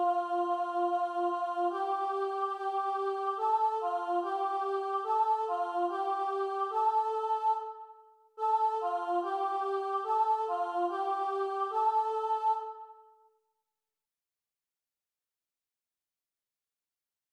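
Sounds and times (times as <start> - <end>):
chanting: 0.0 - 13.1.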